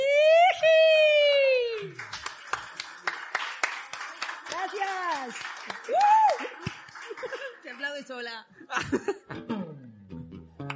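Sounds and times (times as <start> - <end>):
long high whooping cheer: 0.0 - 2.0, 5.8 - 6.7
audience applause: 1.3 - 8.1
laughter: 6.9 - 7.8, 8.6 - 9.5.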